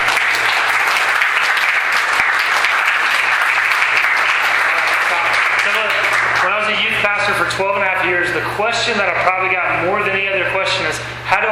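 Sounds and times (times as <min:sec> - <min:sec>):
audience clapping: 0:00.0 - 0:07.0
speech: 0:07.3 - 0:11.4.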